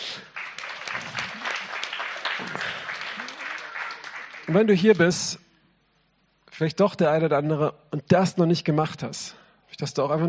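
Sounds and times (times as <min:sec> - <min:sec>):
applause: 0:00.0 - 0:05.3
speech: 0:04.5 - 0:05.4, 0:06.6 - 0:10.2.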